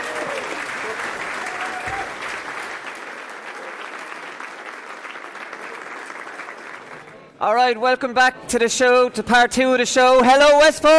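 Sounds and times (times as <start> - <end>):
audience applause welcoming guests at a live GAA sports show in Westport: 0.0 - 7.3
speech: 7.4 - 10.9.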